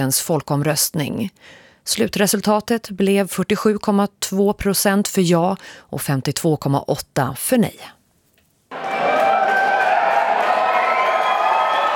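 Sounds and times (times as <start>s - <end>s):
speech: 0.0s - 8.0s
crowd cheering at election night party: 8.7s - 11.9s.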